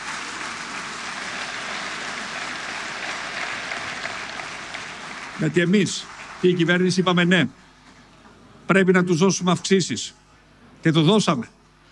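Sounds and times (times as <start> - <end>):
audience applause: 0.0 - 7.2
speech: 5.4 - 7.6, 8.7 - 10.2, 10.8 - 11.6.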